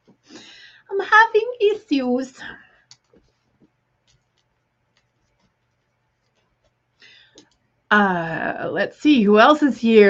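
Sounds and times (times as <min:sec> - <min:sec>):
quiet hum: 0:00.0 - 0:10.0
speech: 0:01.1 - 0:02.6, 0:07.9 - 0:10.0
pen scratching while writing names down: 0:03.1 - 0:06.8.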